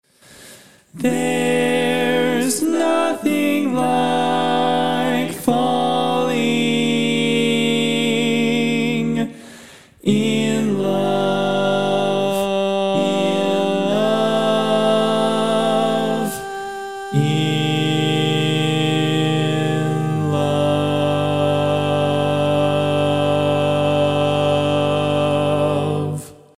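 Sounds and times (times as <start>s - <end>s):
barbershop lead singing: 0.9s - 26.5s.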